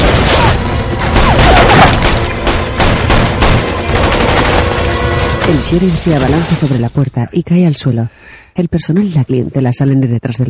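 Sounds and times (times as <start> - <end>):
rapid gunfire at a mercenary on a restaurant rooftop in an action thriller film: 0.0 - 4.7
speech: 5.5 - 10.4.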